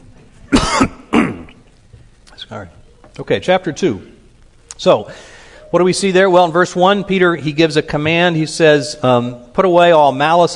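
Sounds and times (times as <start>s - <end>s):
person coughing after something goes down the wrong pipe: 0.5s - 1.6s
speech: 2.5s - 4.2s, 4.8s - 10.5s.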